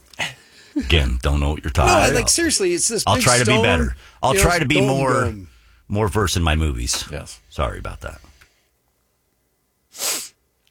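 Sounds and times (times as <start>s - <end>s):
speech: 0.8s - 8.3s
arrogant nasal sniff: 9.9s - 10.4s.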